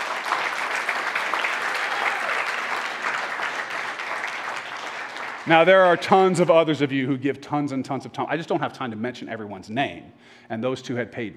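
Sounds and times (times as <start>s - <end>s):
audience applause: 0.0s - 6.6s
speech: 5.5s - 11.3s.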